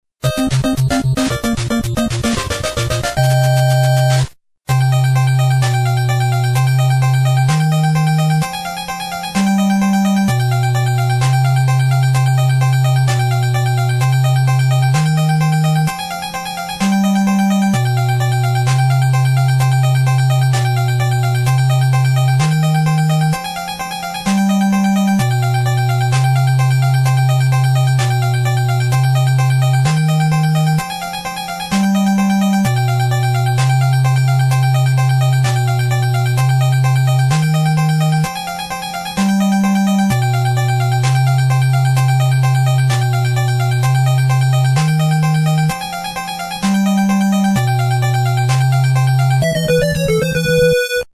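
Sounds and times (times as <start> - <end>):
boss battle game music: 0.2 - 51.1.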